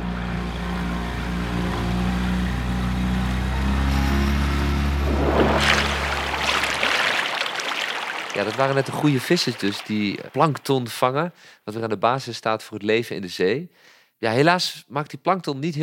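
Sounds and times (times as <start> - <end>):
boat engine droning and throttling up: 0.0 - 10.1
churning water rushing: 4.5 - 11.0
speech: 8.4 - 15.8.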